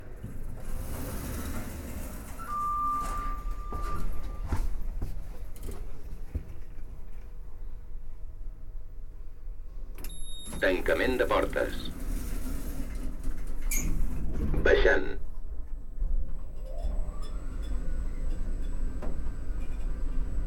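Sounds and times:
elevator sounds: 0.0s - 6.8s, 10.0s - 15.1s, 16.1s - 20.4s.

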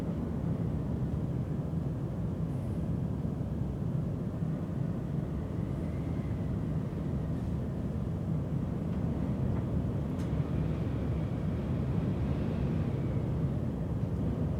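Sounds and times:
wind: 0.0s - 14.5s.

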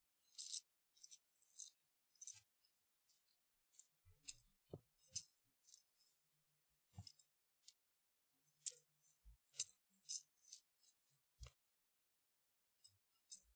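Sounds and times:
necklace: 0.2s - 2.5s, 3.7s - 6.1s, 8.4s - 11.6s.

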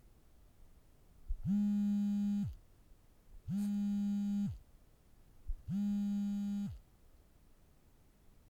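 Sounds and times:
mobile phone vibrating: 1.4s - 2.6s, 3.5s - 4.6s, 5.6s - 6.8s.

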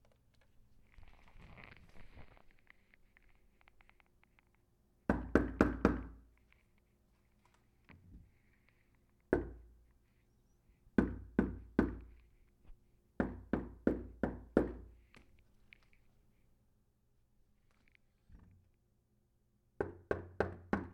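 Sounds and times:
knocking on door: 5.1s - 6.2s, 11.0s - 12.0s, 13.2s - 14.9s, 19.8s - 20.9s.

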